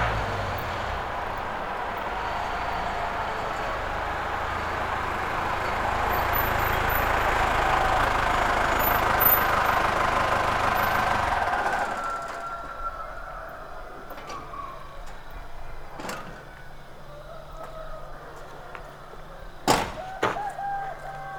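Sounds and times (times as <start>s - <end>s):
cockerel crowing at dawn in a rural South American village: 0.0s - 15.0s, 20.0s - 21.3s.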